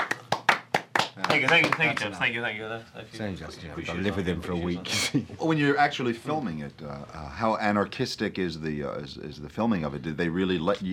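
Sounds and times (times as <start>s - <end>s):
handclaps: 0.0s - 2.1s
speech: 1.2s - 10.9s.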